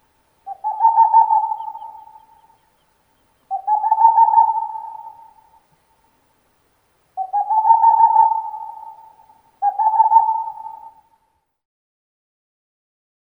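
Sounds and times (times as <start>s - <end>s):
Aegolius funereus owl calling: 0.4s - 5.7s, 7.2s - 11.3s.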